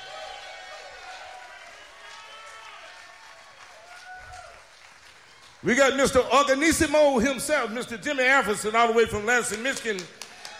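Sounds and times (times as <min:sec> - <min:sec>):
audience applause for guitarist: 0:00.0 - 0:06.6, 0:10.0 - 0:10.5
speech: 0:05.6 - 0:10.2.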